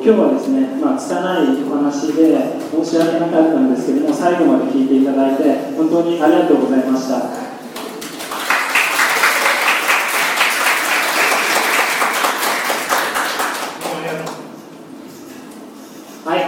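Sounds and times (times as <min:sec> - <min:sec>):
speech: 0:00.0 - 0:07.5
audience applause: 0:07.6 - 0:14.5.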